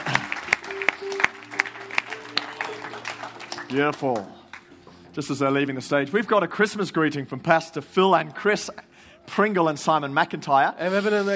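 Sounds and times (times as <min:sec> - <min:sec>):
audience applause for the band: 0:00.0 - 0:04.8
speech: 0:03.7 - 0:04.4, 0:05.2 - 0:11.3.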